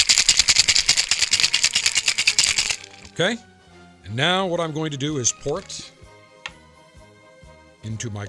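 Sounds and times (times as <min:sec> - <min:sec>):
cocktail shaker with ice rattling: 0:00.0 - 0:03.2, 0:05.4 - 0:05.9
speech: 0:03.2 - 0:03.5, 0:04.1 - 0:05.9, 0:07.8 - 0:08.2.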